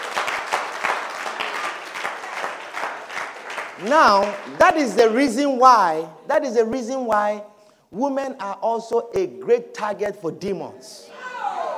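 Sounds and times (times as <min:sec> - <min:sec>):
audience clapping: 0:00.0 - 0:05.2
speech: 0:03.8 - 0:11.1.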